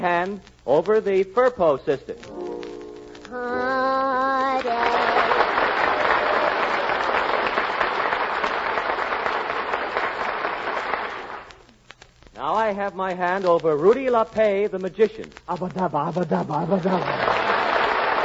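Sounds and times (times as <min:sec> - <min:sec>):
speech: 0:00.0 - 0:02.4, 0:12.4 - 0:17.2
short musical flourish: 0:02.2 - 0:03.7
studio audience applause: 0:04.6 - 0:11.5, 0:16.8 - 0:18.2.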